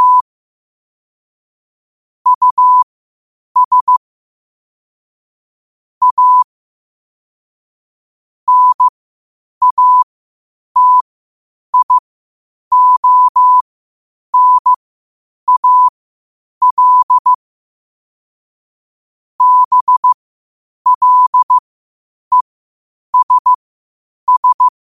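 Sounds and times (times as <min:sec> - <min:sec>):
morse code at 5 wpm: 0:00.0 - 0:00.2, 0:02.3 - 0:02.8, 0:03.6 - 0:04.0, 0:06.0 - 0:06.5, 0:08.5 - 0:08.9, 0:09.6 - 0:10.0, 0:10.8 - 0:11.0, 0:11.8 - 0:12.0, 0:12.7 - 0:13.6, 0:14.4 - 0:14.8, 0:15.5 - 0:15.9, 0:16.6 - 0:17.4, 0:19.4 - 0:20.2, 0:20.9 - 0:21.6, 0:23.2 - 0:23.6, 0:24.3 - 0:24.7.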